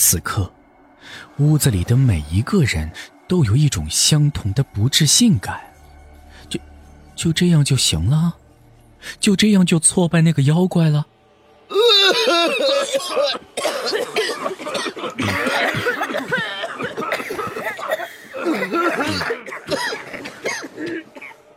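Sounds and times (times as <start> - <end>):
speech: 0.0 - 5.7, 6.4 - 8.4, 9.0 - 16.6
several people coughing: 11.7 - 21.5.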